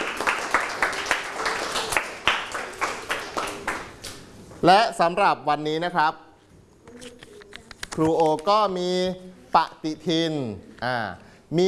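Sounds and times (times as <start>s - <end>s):
students clapping hands: 0.0s - 4.2s
speech: 4.6s - 6.2s, 8.0s - 11.6s.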